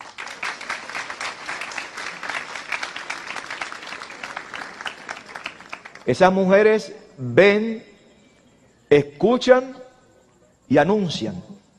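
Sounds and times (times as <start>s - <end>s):
applause: 0.0s - 6.4s
speech: 6.0s - 7.9s, 8.9s - 9.8s, 10.7s - 11.5s.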